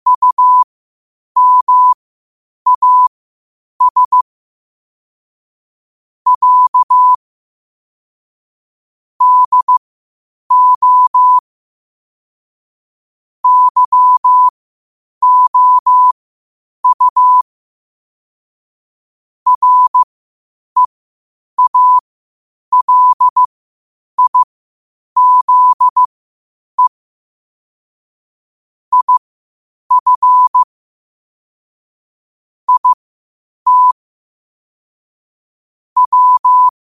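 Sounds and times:
morse code at 5 wpm: 0.1 - 0.6, 1.4 - 2.0, 2.7 - 3.1, 3.8 - 4.2, 6.3 - 7.2, 9.2 - 9.8, 10.5 - 11.4, 13.4 - 14.5, 15.2 - 16.2, 16.8 - 17.4, 19.5 - 20.1, 21.6 - 22.0, 22.7 - 23.5, 24.2 - 24.5, 25.2 - 26.1, 28.9 - 29.2, 29.9 - 30.7, 32.7 - 33.0, 33.7 - 34.0, 36.0 - 36.7.

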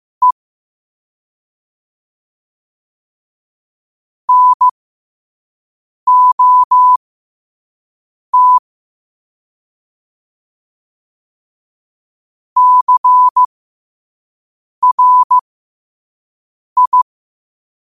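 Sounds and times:
morse code at 5 wpm: 4.3 - 4.7, 6.1 - 7.0, 8.4 - 8.6, 12.6 - 13.5, 14.8 - 15.4, 16.8 - 17.0.

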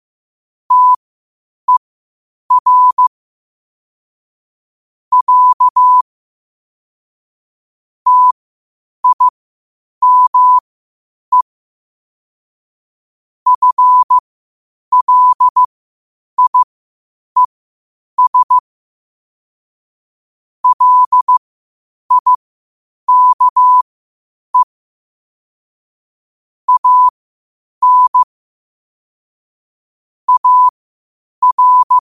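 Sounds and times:
morse code at 5 wpm: 0.7 - 1.0, 2.5 - 3.1, 5.1 - 6.0, 8.1 - 8.4, 9.0 - 9.3, 10.0 - 10.6, 13.5 - 14.2, 14.9 - 15.7, 16.4 - 16.7, 18.2 - 18.6, 20.6 - 21.4, 22.1 - 22.4, 23.1 - 23.8, 26.7 - 27.1, 27.8 - 28.3, 30.3 - 30.8, 31.4 - 32.0.

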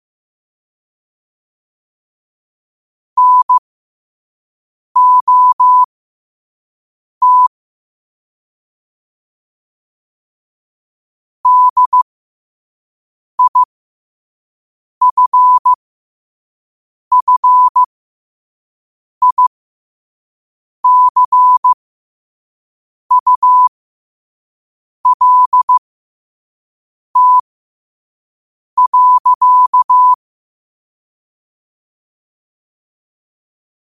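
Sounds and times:
morse code at 5 wpm: 3.2 - 3.6, 5.0 - 5.9, 7.2 - 7.5, 11.5 - 12.0, 13.4 - 13.7, 15.0 - 15.8, 17.1 - 17.9, 19.2 - 19.5, 20.8 - 21.8, 23.1 - 23.7, 25.1 - 25.8, 27.2 - 27.4, 28.8 - 30.2.

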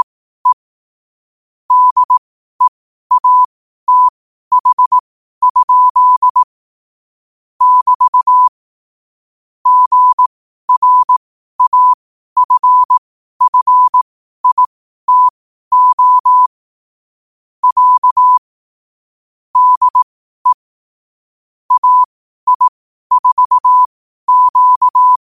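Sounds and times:
morse code at 5 wpm: 0.0 - 0.6, 1.7 - 6.5, 7.6 - 8.5, 9.7 - 16.5, 17.6 - 18.4, 19.6 - 20.6, 21.7 - 25.2.

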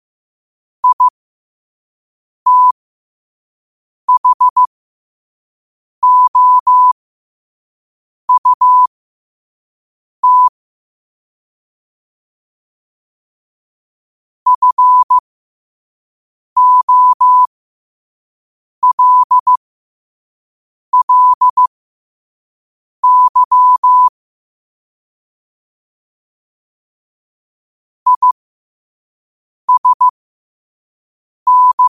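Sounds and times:
morse code at 5 wpm: 0.8 - 1.1, 2.5 - 2.8, 4.1 - 4.7, 6.0 - 7.0, 8.3 - 8.9, 10.2 - 10.5, 14.5 - 15.2, 16.6 - 17.5, 18.8 - 19.6, 21.0 - 21.7, 23.0 - 24.1, 28.1 - 28.4, 29.7 - 30.1, 31.5 - 31.8.

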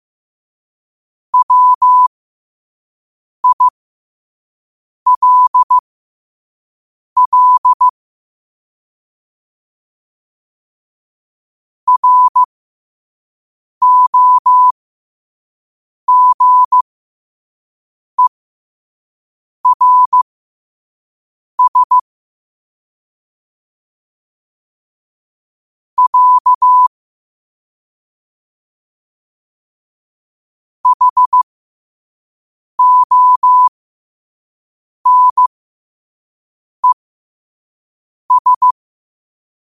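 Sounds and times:
morse code at 5 wpm: 1.4 - 2.1, 3.4 - 3.7, 5.1 - 5.8, 7.2 - 7.9, 11.9 - 12.5, 13.8 - 14.7, 16.1 - 16.8, 19.6 - 20.2, 21.6 - 22.0, 26.0 - 26.9, 30.8 - 31.5, 32.8 - 33.7, 35.0 - 35.5, 38.3 - 38.8.

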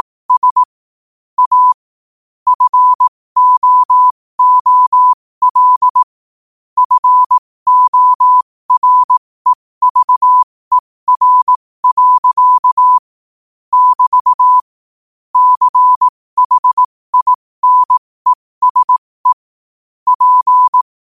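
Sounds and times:
morse code at 5 wpm: 0.0 - 0.7, 1.4 - 1.8, 2.5 - 6.1, 6.8 - 13.0, 13.7 - 14.7, 15.4 - 19.4, 20.1 - 20.9.

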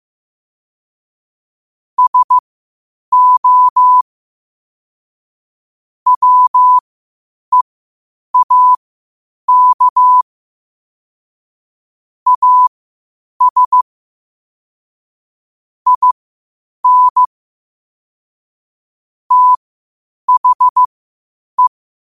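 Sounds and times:
morse code at 5 wpm: 2.0 - 2.4, 3.1 - 4.0, 6.1 - 6.8, 8.4 - 8.8, 9.5 - 10.2, 12.3 - 12.7, 13.4 - 13.8, 15.9 - 16.2, 16.8 - 17.3, 19.3 - 19.6, 20.3 - 20.9.

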